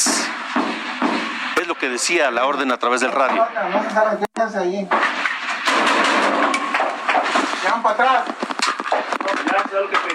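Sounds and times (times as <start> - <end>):
machine-gun fire: 0.0 - 1.7, 4.9 - 9.5
speech: 1.6 - 5.2, 7.6 - 8.5, 9.7 - 10.1.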